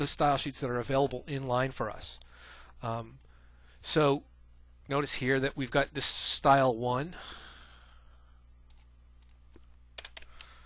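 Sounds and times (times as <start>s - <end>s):
speech: 0.0s - 3.2s, 3.8s - 4.3s, 4.9s - 7.4s
computer keyboard keystrokes for a cut-and-paste: 8.7s - 10.6s.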